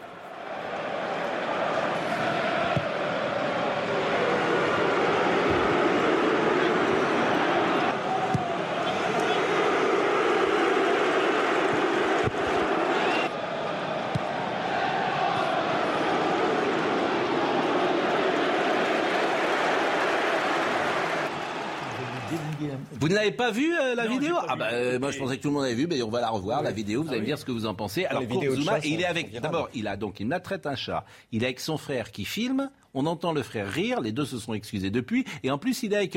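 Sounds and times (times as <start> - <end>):
stadium crowd whistling at a footballer: 0.0 - 22.6
speech: 23.0 - 36.1.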